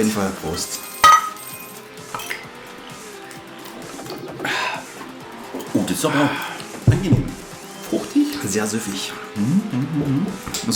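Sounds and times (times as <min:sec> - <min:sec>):
speech: 0:00.0 - 0:00.9, 0:05.9 - 0:10.7
Mönchshof Naturradler bottles opening simultaneously: 0:00.0 - 0:08.5.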